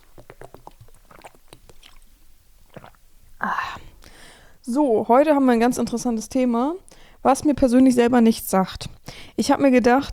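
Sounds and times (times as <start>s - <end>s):
person taking a sip of water: 0.0s - 4.6s
speech: 4.7s - 10.1s.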